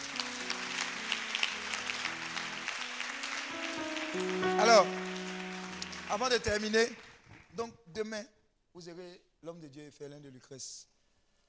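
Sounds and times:
congregation at a late-night worship service applauding God: 0.0s - 7.6s
speech: 4.1s - 5.0s, 6.1s - 7.0s, 7.6s - 10.9s.

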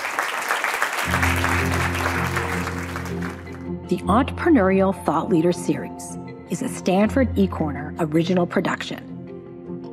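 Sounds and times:
audience applause: 0.0s - 3.6s
speech: 3.9s - 9.1s.

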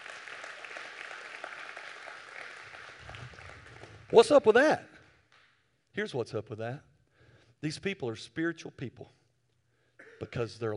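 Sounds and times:
audience clapping: 0.0s - 4.7s
speech: 4.1s - 4.9s, 6.0s - 6.9s, 7.6s - 9.2s, 10.2s - 10.7s.

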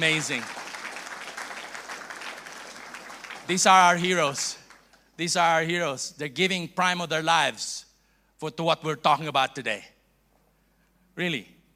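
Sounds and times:
speech: 0.0s - 0.6s, 3.5s - 4.6s, 5.2s - 9.9s, 11.2s - 11.6s
audience applause: 0.0s - 4.9s.

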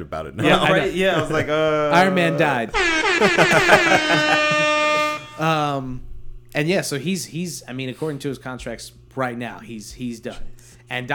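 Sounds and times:
speech: 0.0s - 4.6s, 5.4s - 11.1s
laughter: 0.4s - 5.8s
air horn alarm sound effect: 2.7s - 5.8s.

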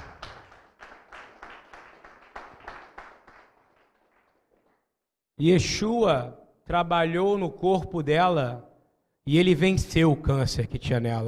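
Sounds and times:
audience applause: 0.0s - 4.8s
speech: 5.4s - 8.7s, 9.3s - 11.2s.

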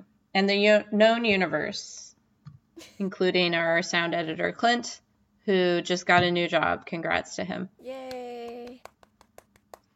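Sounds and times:
speech: 0.4s - 2.1s, 2.8s - 8.2s
soft hand clapping: 8.0s - 9.9s.

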